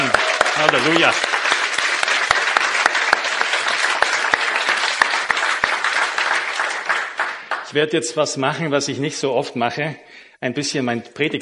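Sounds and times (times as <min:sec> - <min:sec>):
audience applause: 0:00.0 - 0:07.8
speech: 0:00.6 - 0:01.4, 0:07.7 - 0:11.4.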